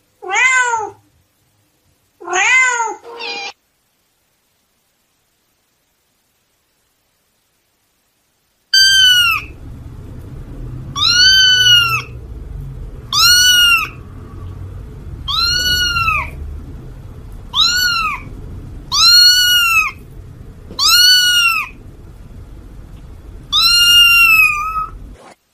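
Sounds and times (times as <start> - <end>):
cat meowing loudly: 0.2 - 1.0, 2.2 - 3.6, 8.8 - 9.6, 11.0 - 12.2, 13.1 - 14.0, 15.2 - 16.4, 17.5 - 20.0, 20.7 - 21.8, 23.4 - 25.0
steady low background hum: 3.0 - 25.4.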